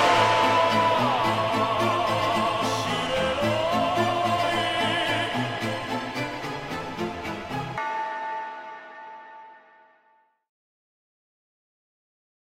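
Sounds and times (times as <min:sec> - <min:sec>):
phonk music: 0:00.0 - 0:09.9.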